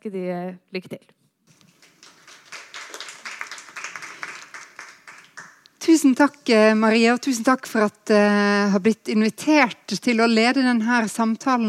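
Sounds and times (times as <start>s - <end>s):
speech: 0.0s - 1.2s, 5.8s - 11.6s
audience applause: 1.7s - 5.6s.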